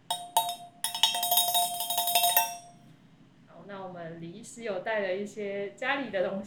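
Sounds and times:
thermal food jar being shaken with metallic clattering: 0.0s - 2.8s
speech: 4.5s - 6.4s.

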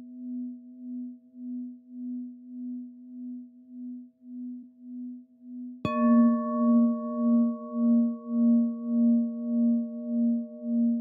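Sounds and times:
singing bowl resonance: 5.9s - 11.0s.

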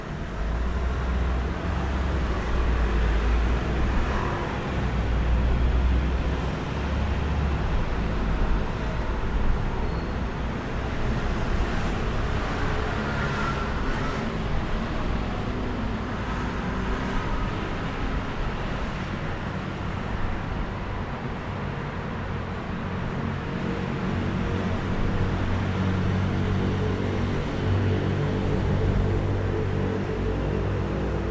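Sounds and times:
traffic on a flyover in Taipei, Taiwan: 0.0s - 31.3s.

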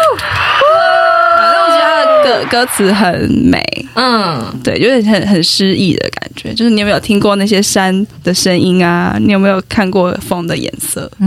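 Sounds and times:
applause and cheering: 0.0s - 3.0s
speech: 2.5s - 11.2s.

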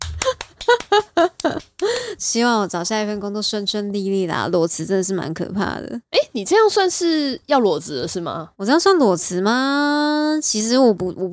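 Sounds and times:
hand clapping: 0.0s - 1.9s
speech: 1.4s - 11.3s.

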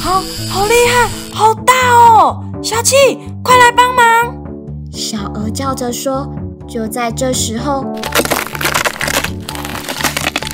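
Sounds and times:
speech: 0.1s - 8.3s
ice cracking: 8.0s - 10.5s.

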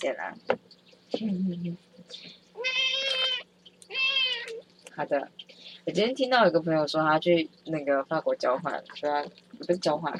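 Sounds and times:
speech: 0.0s - 2.8s, 5.0s - 10.1s
faint steady hum: 0.0s - 10.1s
cat meowing: 2.6s - 4.6s.

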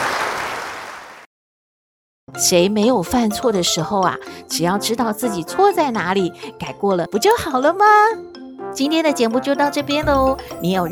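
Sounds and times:
applause: 0.0s - 1.3s
speech: 2.3s - 10.9s.

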